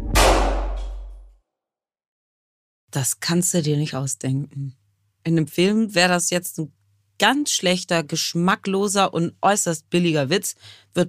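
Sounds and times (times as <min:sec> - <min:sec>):
gunshot: 0:00.0 - 0:01.2
speech: 0:02.9 - 0:11.0.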